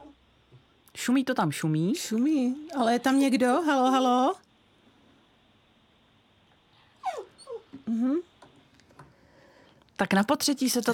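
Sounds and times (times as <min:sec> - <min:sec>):
dog whimpering: 0:00.0 - 0:00.2, 0:07.0 - 0:08.2
speech: 0:01.0 - 0:04.4, 0:10.0 - 0:10.9.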